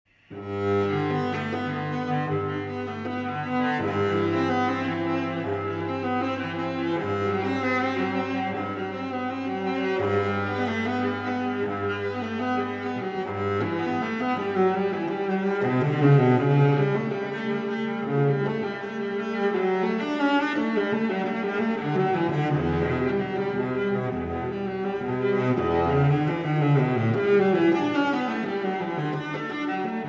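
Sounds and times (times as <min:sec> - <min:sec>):
cello: 0:00.2 - 0:30.0.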